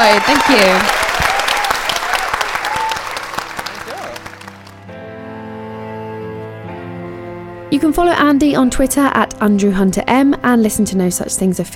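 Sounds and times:
audience applause: 0:00.0 - 0:04.9
speech: 0:00.1 - 0:01.0, 0:07.8 - 0:11.7.

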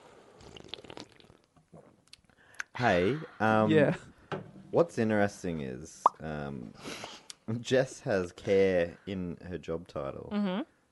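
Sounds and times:
person sipping beer: 0:00.3 - 0:02.3
speech: 0:02.8 - 0:04.1, 0:04.7 - 0:10.7.

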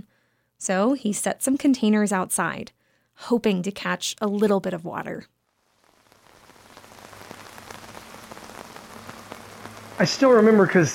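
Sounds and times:
speech: 0:00.6 - 0:05.4, 0:10.0 - 0:10.9
heavy rain pattering on a hard surface: 0:05.5 - 0:10.9.

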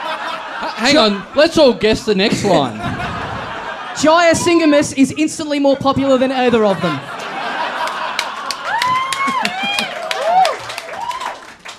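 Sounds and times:
audience laughter and chuckling: 0:00.0 - 0:10.3
speech: 0:00.6 - 0:03.0, 0:04.0 - 0:07.2
scattered audience clapping: 0:07.2 - 0:11.7.

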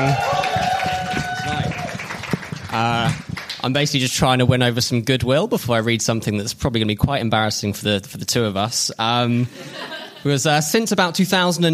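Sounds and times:
speech: 0:00.0 - 0:00.4, 0:02.8 - 0:11.7
voices whooping: 0:00.0 - 0:02.1
audience applause: 0:00.0 - 0:03.8
laughter: 0:09.5 - 0:10.4.

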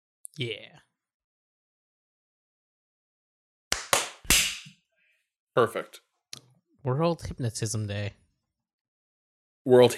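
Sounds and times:
speech: 0:00.4 - 0:00.9, 0:05.6 - 0:06.0, 0:06.8 - 0:08.2, 0:09.6 - 0:09.9
hands clapping in unison: 0:03.7 - 0:04.8.

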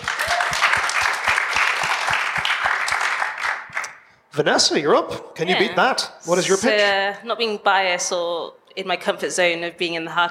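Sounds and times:
audience applause: 0:00.0 - 0:04.0
speech: 0:04.4 - 0:10.2.

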